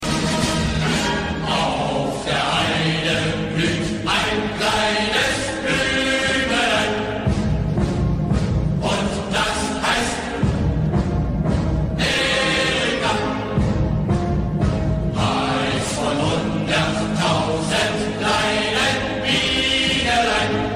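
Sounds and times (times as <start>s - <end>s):
German march music: 0.0s - 20.7s.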